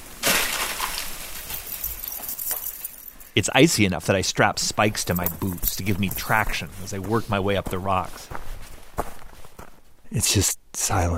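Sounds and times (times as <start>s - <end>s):
daggers of ice calving off sunlit cliffs echoing through the valley: 0.1s - 1.7s
speech: 3.4s - 8.4s, 10.1s - 11.1s.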